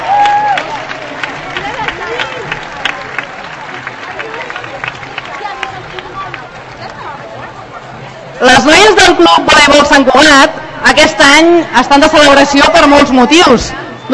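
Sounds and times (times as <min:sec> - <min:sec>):
audience applause: 0:00.0 - 0:07.9
speech: 0:08.4 - 0:14.1.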